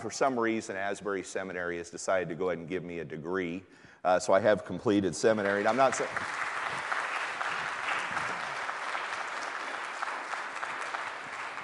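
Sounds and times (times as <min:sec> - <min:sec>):
speech: 0:00.0 - 0:06.5
audience applause: 0:05.4 - 0:11.6.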